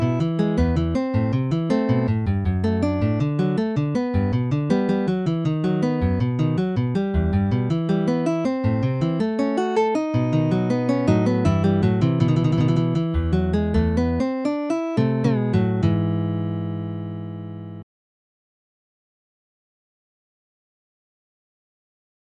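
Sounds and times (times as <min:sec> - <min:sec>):
baroque allemande on guitar: 0:00.0 - 0:17.8.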